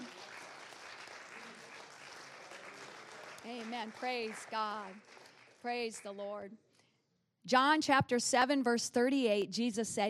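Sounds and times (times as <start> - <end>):
audience clapping hands: 0.0 - 6.4
speech: 3.4 - 6.7, 7.4 - 10.0.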